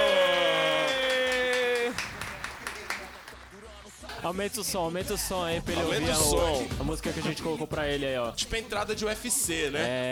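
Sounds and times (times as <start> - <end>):
applause welcoming a guest: 0.0 - 4.2
speech: 4.2 - 10.1.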